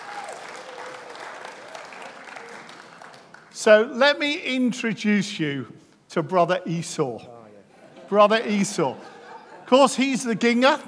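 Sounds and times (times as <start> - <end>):
audience applause: 0.0 - 3.5
speech: 3.6 - 7.4, 8.1 - 9.1, 9.7 - 10.8
laughter: 7.7 - 10.8.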